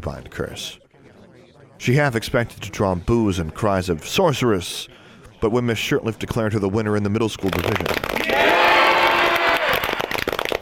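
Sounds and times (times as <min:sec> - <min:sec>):
speech: 0:00.0 - 0:00.8, 0:01.8 - 0:08.5
friends cheering: 0:08.2 - 0:10.1.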